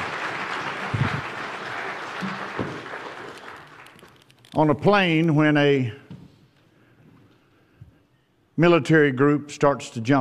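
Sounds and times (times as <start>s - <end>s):
audience applause: 0.0s - 4.3s
speech: 4.6s - 6.0s, 8.6s - 10.1s.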